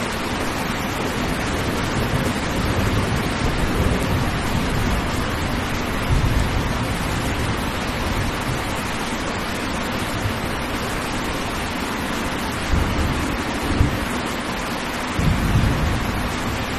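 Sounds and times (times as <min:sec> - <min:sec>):
gentle rain: 0:00.0 - 0:16.7
soft low thunder rumbles: 0:00.1 - 0:09.0, 0:12.6 - 0:14.2, 0:15.2 - 0:16.7.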